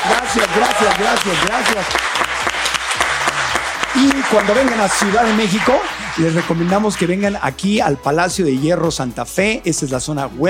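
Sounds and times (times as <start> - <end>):
audience applause: 0.0 - 7.4
speech: 0.4 - 2.4, 4.0 - 10.4.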